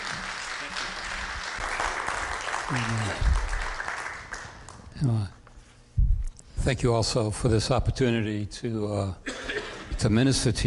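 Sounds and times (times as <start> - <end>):
audience applause welcoming a pastor at a morning church service: 0.0 - 4.8
speech: 2.7 - 3.4, 5.0 - 5.4, 6.6 - 9.3, 9.9 - 10.6.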